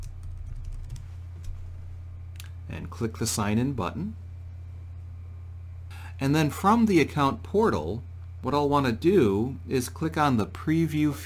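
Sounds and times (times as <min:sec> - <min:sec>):
login credentials typed on a computer keyboard: 0:00.0 - 0:01.1
low steady hum: 0:00.0 - 0:11.2
speech: 0:02.7 - 0:04.2, 0:06.2 - 0:11.2.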